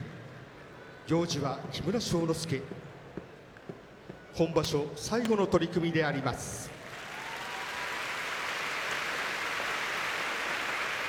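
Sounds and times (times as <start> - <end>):
speech: 1.1 - 2.9, 4.4 - 6.7
crowd applauding in IG Arena: 6.8 - 11.0.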